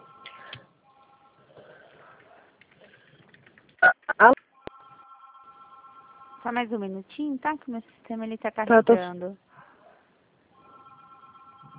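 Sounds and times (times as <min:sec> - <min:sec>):
telephone ringing: 0:00.0 - 0:01.5, 0:04.6 - 0:06.8, 0:10.5 - 0:11.7
speech: 0:06.5 - 0:09.4.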